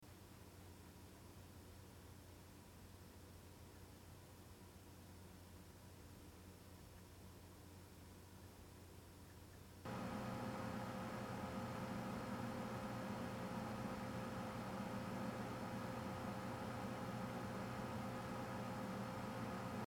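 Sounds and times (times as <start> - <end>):
Lian Li PC101 computer case fan whirring: 9.9 - 19.8.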